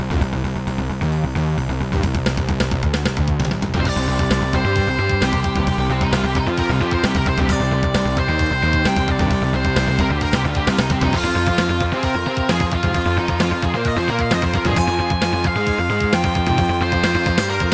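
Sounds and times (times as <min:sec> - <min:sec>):
Roland XV-2020 synthesizer: 0:00.0 - 0:17.7.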